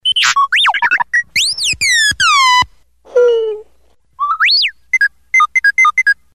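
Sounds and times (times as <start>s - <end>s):
R2-D2 robot beeps text message tone: 0.0s - 2.7s, 4.2s - 6.2s.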